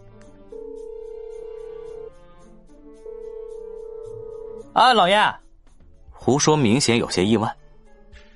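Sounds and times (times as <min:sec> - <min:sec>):
satellite phone ringing tone on speakerphone: 0:00.5 - 0:02.3, 0:03.0 - 0:04.7
speech: 0:04.8 - 0:05.4, 0:06.3 - 0:07.6.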